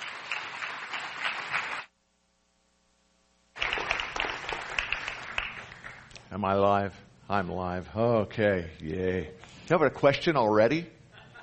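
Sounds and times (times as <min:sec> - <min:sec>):
church audience applauding a guest speaker: 0:00.0 - 0:01.9, 0:03.6 - 0:06.1
speech: 0:06.3 - 0:11.0.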